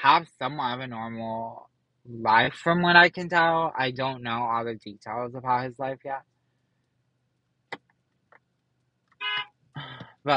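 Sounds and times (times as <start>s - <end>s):
speech: 0.0s - 6.3s, 9.8s - 10.3s
car horn honking: 9.2s - 9.5s.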